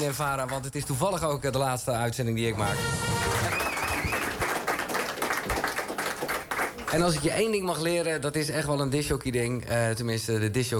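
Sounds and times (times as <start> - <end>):
speech: 0.0 - 3.7, 6.9 - 10.7
rising whistle: 2.6 - 4.5
live audience applauding: 2.6 - 7.5.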